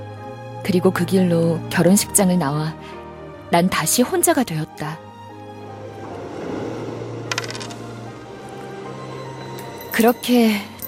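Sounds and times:
speech: 0:00.6 - 0:05.1, 0:10.0 - 0:10.7
subway token dropping: 0:07.3 - 0:07.8.

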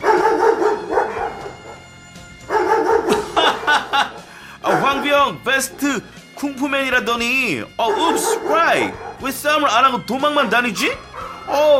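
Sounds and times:
dog barking: 0:00.0 - 0:01.8, 0:02.5 - 0:03.9, 0:04.6 - 0:05.2, 0:07.8 - 0:09.3, 0:11.2 - 0:11.5
laughter: 0:03.0 - 0:05.1
speech: 0:05.2 - 0:11.7.

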